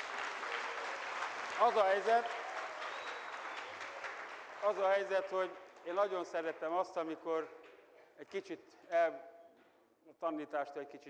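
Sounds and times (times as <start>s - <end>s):
audience applause: 0.0s - 5.5s
speech: 1.6s - 2.4s, 4.6s - 7.6s, 8.2s - 9.3s, 10.1s - 11.0s.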